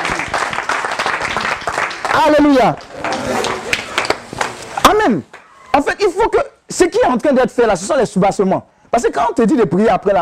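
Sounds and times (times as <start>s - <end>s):
church service congregation clapping to acclaim God: 0.0s - 5.5s
speech: 2.2s - 3.4s, 5.0s - 10.2s.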